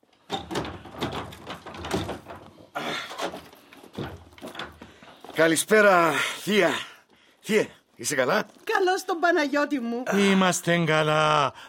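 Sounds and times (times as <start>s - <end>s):
door being opened at a family home: 0.1s - 5.6s
speech: 5.4s - 6.9s, 7.5s - 11.6s.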